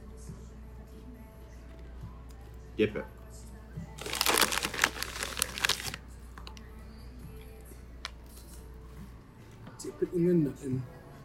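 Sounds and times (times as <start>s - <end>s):
speech: 2.8s - 3.2s, 9.8s - 11.0s
crunching pretzel snack: 4.0s - 6.0s.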